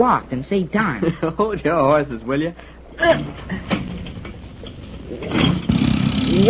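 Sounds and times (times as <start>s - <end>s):
speech: 0.0s - 3.8s, 5.1s - 6.4s
boat engine starting: 3.6s - 6.4s.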